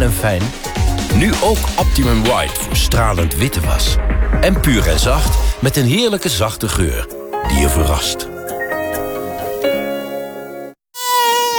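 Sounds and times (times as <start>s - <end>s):
speech: 0.1s - 8.3s
mosquito buzzing: 9.0s - 11.5s.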